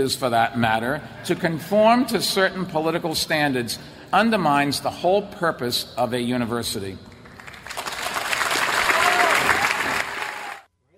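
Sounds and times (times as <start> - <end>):
speech: 0.0 - 7.1
Harvard audience clapping: 7.2 - 10.7.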